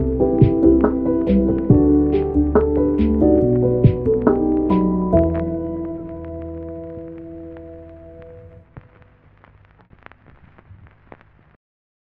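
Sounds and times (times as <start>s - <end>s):
lo-fi piano music: 0.0s - 8.8s.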